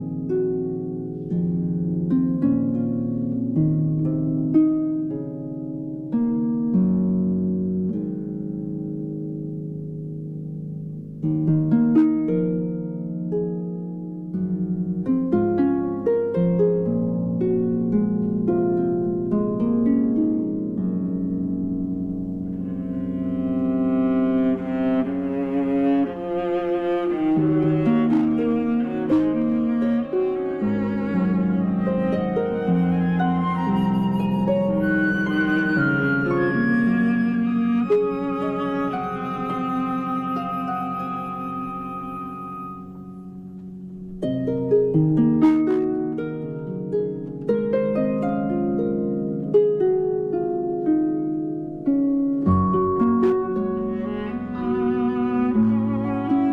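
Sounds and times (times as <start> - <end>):
harp concerto lullaby: 0.0 - 56.5.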